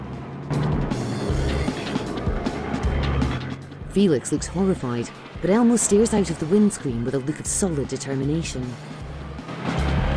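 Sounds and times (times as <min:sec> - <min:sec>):
car engine roaring while reversing, braking sharply and speeding off: 0:00.0 - 0:10.1
speech: 0:04.0 - 0:09.0.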